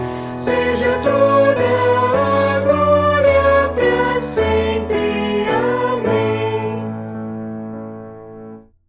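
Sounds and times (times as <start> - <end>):
person singing: 0.0 - 7.0
piano: 0.0 - 8.8.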